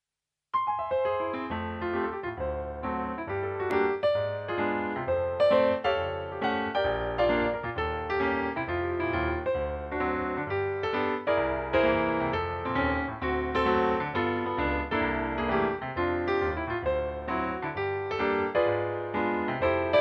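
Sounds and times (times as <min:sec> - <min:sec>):
piano: 0:00.5 - 0:19.9.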